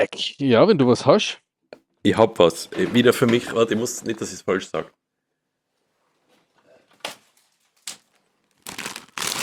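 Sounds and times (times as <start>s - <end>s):
speech: 0.0s - 1.4s, 2.0s - 5.0s
snack packaging crinkling: 7.9s - 9.4s.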